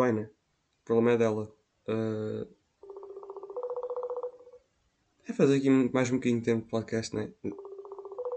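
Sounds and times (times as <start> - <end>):
speech: 0.0 - 2.6, 5.3 - 7.6
ringing tone of an outgoing telephone call: 2.8 - 4.6, 7.5 - 8.3.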